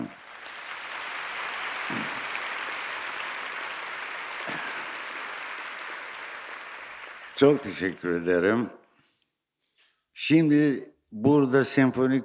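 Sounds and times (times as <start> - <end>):
crowd applause: 0.0 - 8.3
speech: 7.4 - 8.8, 10.3 - 12.2.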